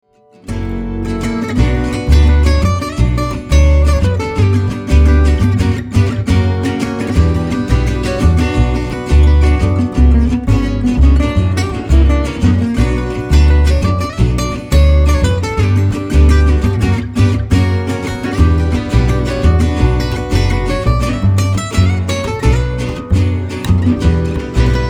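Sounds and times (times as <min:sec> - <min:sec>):
pentatonic melody: 0:00.5 - 0:24.8.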